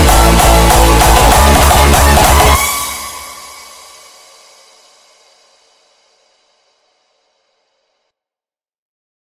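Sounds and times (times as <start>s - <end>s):
hardstyle music: 0.0s - 5.3s.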